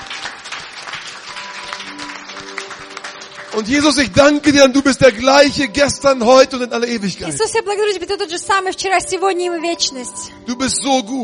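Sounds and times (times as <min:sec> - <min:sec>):
congregation clapping at a church healing service: 0:00.0 - 0:06.1
speech: 0:03.6 - 0:11.2.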